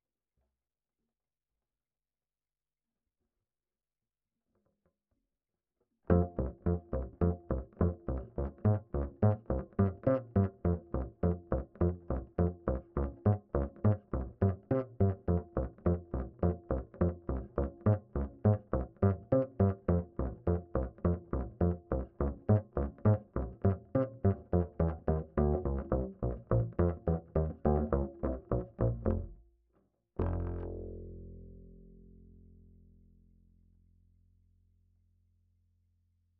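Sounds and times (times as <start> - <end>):
bass line: 6.1 - 29.4, 30.2 - 33.3.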